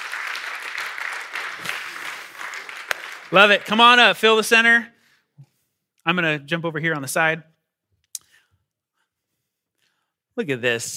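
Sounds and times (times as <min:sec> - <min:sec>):
audience applause: 0:00.0 - 0:04.2
speech: 0:03.3 - 0:04.9, 0:06.0 - 0:07.5, 0:10.4 - 0:10.9.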